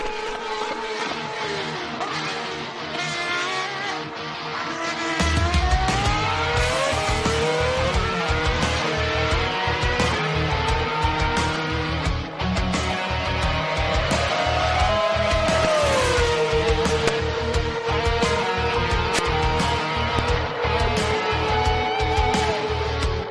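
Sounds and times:
car engine sound effect revving: 0.0 - 23.2.

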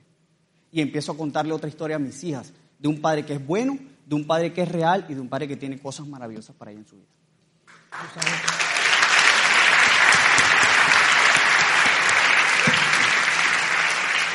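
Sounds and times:
speech: 0.7 - 7.2, 7.9 - 8.7
audience applause: 7.7 - 14.3.

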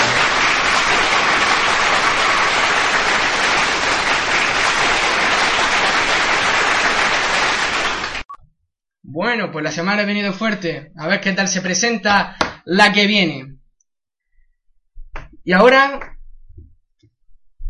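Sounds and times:
audience applauding: 0.0 - 8.3
speech: 9.3 - 13.6, 15.4 - 16.1.

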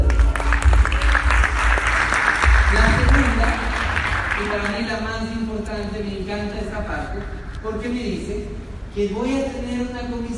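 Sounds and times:
audience applause: 0.0 - 4.8
speech: 4.4 - 10.3.

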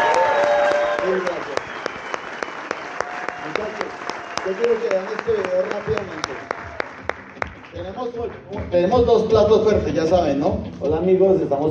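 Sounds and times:
audience applause: 0.0 - 8.7
speech: 4.5 - 6.2, 8.0 - 11.6.

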